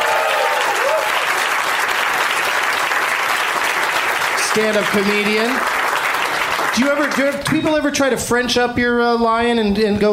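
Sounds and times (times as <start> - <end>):
crowd whooping: 0.0 - 1.7
crowd applauding for a guest: 0.0 - 7.7
speech: 4.5 - 5.8, 6.8 - 10.1.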